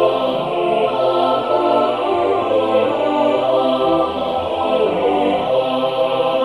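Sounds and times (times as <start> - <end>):
MIDI music: 0.1 - 6.3.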